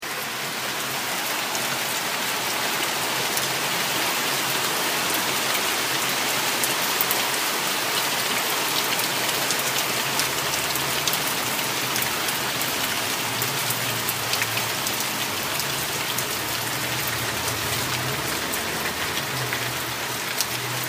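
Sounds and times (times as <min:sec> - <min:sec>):
heavy rain outside: 0:00.0 - 0:20.8.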